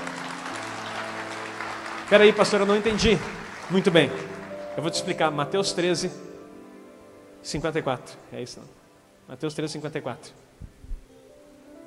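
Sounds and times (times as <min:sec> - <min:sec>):
audience applauding: 0:00.0 - 0:05.6
speech: 0:02.1 - 0:06.3, 0:07.4 - 0:10.4.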